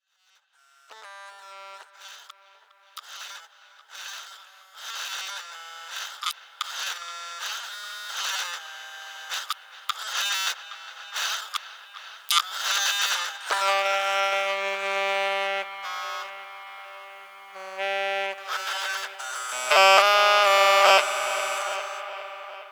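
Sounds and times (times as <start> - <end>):
vocals: 11.5 - 22.7.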